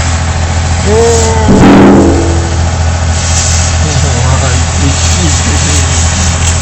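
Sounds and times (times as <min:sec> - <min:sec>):
heavy engine droning during gas pipeline dismantling: 0:00.2 - 0:06.5.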